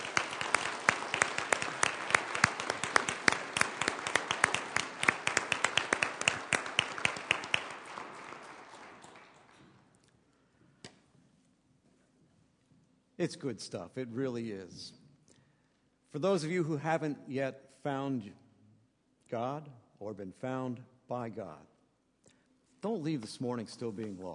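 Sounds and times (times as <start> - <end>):
audience applause: 0.0 - 9.8
speech: 13.2 - 15.0, 16.1 - 18.4, 19.3 - 21.7, 22.8 - 24.3.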